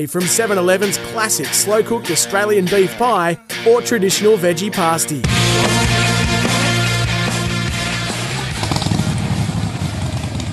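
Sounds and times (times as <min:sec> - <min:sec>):
speech: 0:00.0 - 0:06.1
Harley-Davidson Pan America motorcycle engine revving: 0:05.3 - 0:10.5.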